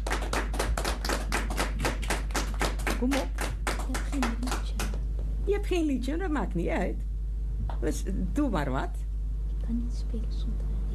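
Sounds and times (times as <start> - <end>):
applause for a clarinet player: 0.0 - 5.3
speech: 3.0 - 4.4, 5.5 - 7.1, 7.8 - 9.0, 9.7 - 10.8.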